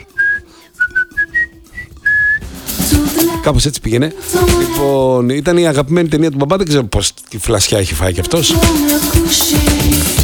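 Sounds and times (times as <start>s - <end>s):
whistled march tune: 0.0s - 2.6s
speech: 3.4s - 10.1s.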